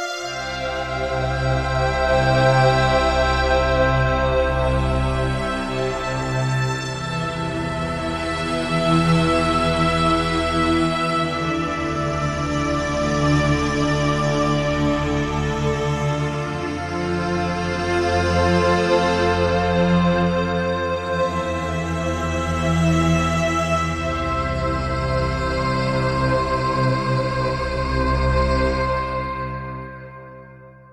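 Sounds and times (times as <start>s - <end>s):
synth pad: 0.2s - 30.0s.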